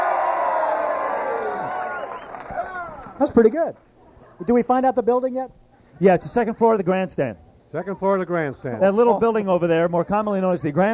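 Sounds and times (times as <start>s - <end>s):
crowd cheering: 0.0s - 4.4s
speech: 3.2s - 10.9s.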